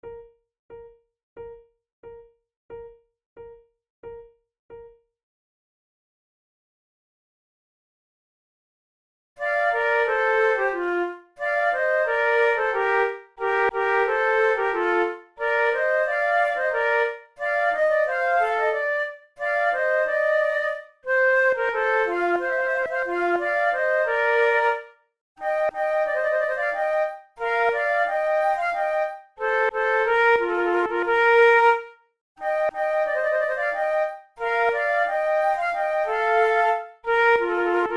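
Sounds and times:
flute sonata andante: 9.4s - 37.9s.

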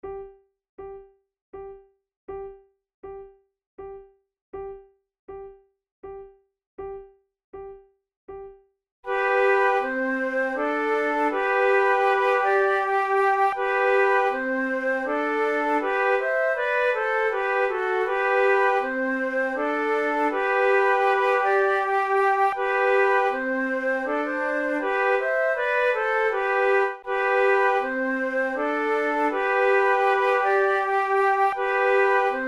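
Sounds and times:
musical trio: 9.1s - 32.4s.

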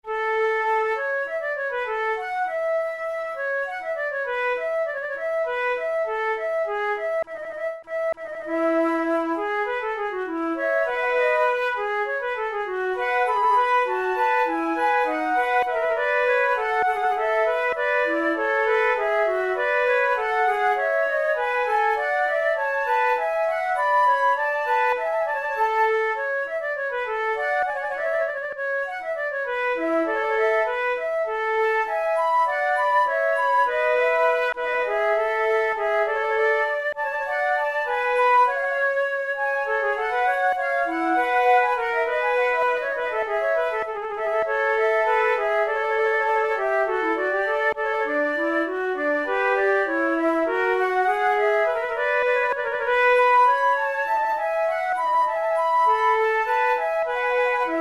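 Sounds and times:
two flutes playing a fugue: 0.0s - 57.8s.

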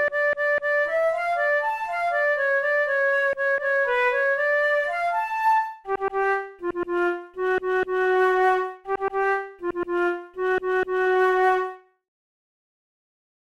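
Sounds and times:
flute playing an operatic duet: 0.0s - 11.9s.

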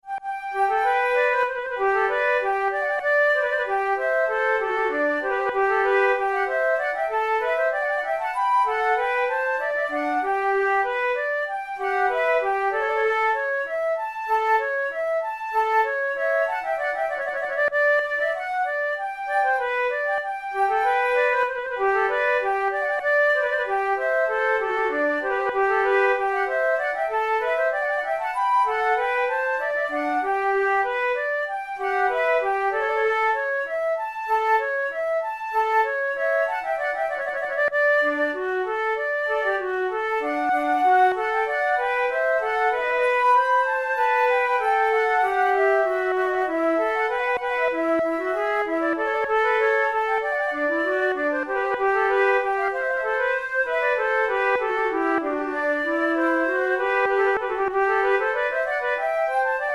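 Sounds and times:
two flutes playing an allemande: 0.0s - 59.7s.

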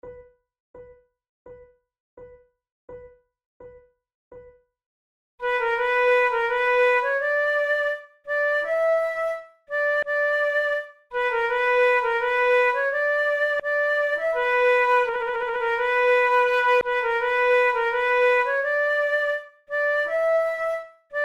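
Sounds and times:
flute duet playing tunes: 5.4s - 21.2s.

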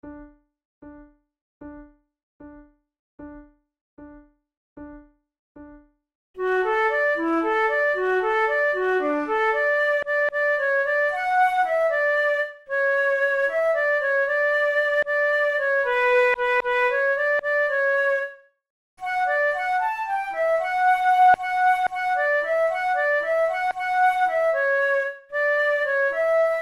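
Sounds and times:
flute duet: 6.4s - 18.4s, 19.0s - 26.6s.

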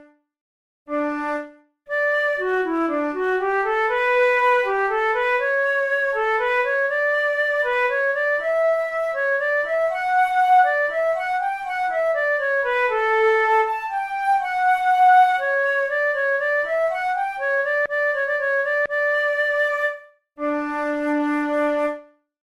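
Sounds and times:
flute prelude: 0.9s - 22.3s.

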